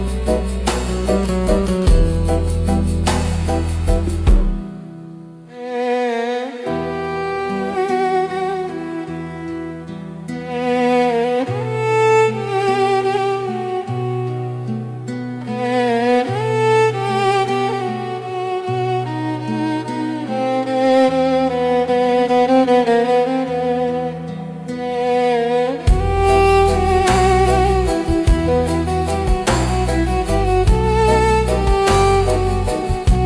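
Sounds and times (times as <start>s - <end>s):
refined world fusion instrumental music: 0.0s - 5.9s, 6.5s - 33.2s.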